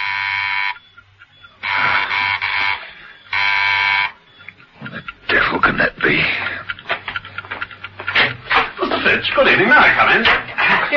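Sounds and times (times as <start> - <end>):
electric buzzer doorbell ringing in a coded pattern: 0.0 - 0.8, 1.6 - 4.2
speech: 5.7 - 6.5, 9.2 - 10.9.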